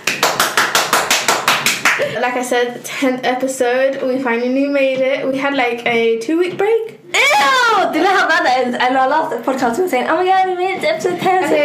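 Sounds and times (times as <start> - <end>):
hand clapping: 0.0 - 2.2
speech: 2.0 - 11.6.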